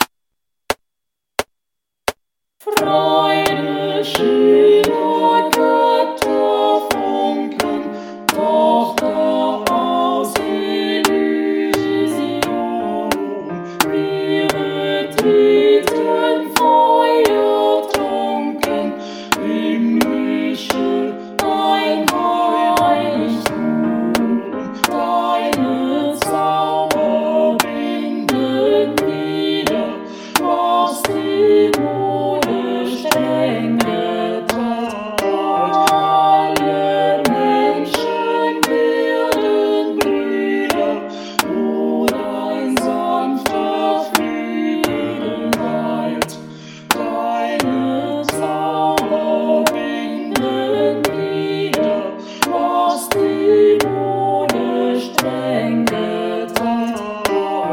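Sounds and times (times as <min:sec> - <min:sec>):
classical choir singing: 0:02.6 - 0:57.7.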